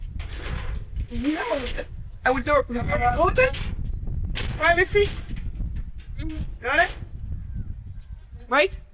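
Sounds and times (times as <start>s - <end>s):
sliding shower door being pulled shut: 0.2s - 1.9s
speech: 1.1s - 3.7s, 4.6s - 5.2s, 6.2s - 7.1s, 8.5s - 8.9s.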